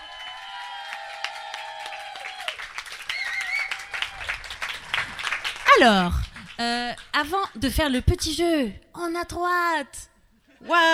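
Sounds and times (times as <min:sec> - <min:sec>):
audience applause: 0:00.0 - 0:07.1
speech: 0:05.8 - 0:10.9.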